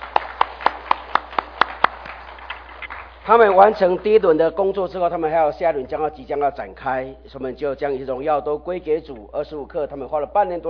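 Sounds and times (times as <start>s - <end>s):
audience applause: 0.0s - 3.5s
speech: 3.2s - 10.6s.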